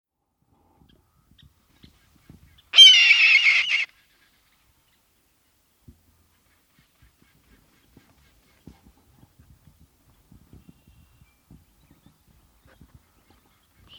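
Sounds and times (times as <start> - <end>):
red-tailed hawk giving a hoarse raspy scream: 2.8 - 3.9.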